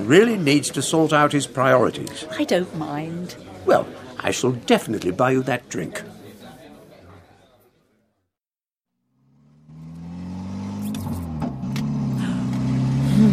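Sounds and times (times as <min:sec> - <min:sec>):
speech: 0:00.1 - 0:06.2
car engine rumble while being driven: 0:09.1 - 0:13.3.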